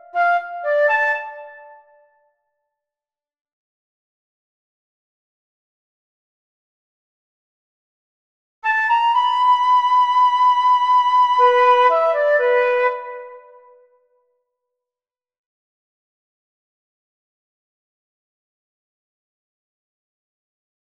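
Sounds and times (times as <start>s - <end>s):
flute: 0.0s - 2.3s, 8.6s - 14.1s.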